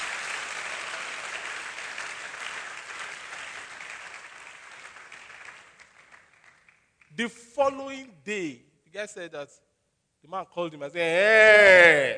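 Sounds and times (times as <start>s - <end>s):
audience clapping: 0.0s - 7.2s
speech: 7.2s - 12.1s.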